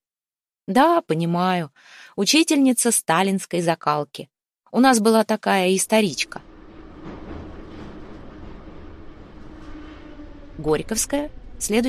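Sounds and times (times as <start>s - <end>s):
speech: 0.7s - 6.5s, 10.6s - 11.8s
metro train whooshing out of tunnel: 5.8s - 11.8s.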